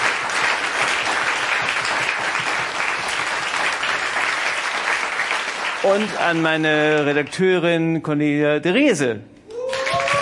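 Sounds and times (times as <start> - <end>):
audience applause: 0.0 - 7.1, 9.6 - 10.1
speech: 5.8 - 9.3.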